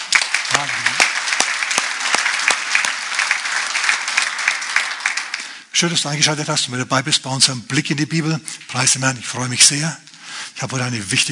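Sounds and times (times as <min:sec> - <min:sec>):
audience clapping: 0:00.0 - 0:06.4
speech: 0:00.5 - 0:01.2, 0:05.8 - 0:11.3.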